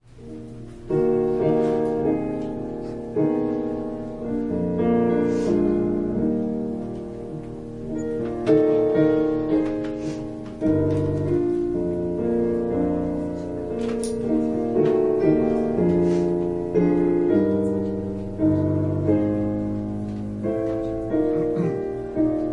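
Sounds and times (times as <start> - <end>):
piano prelude: 0.0 - 22.5.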